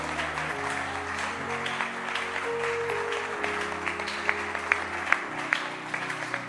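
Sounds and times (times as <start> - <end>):
audience clapping hands: 0.0 - 6.4
low sustained musical tone: 0.0 - 6.4.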